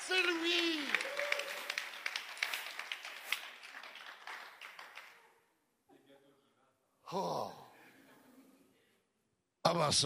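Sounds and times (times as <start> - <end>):
audience clapping: 0.0 - 5.5
speech: 0.1 - 0.9, 7.1 - 7.3, 9.8 - 10.0.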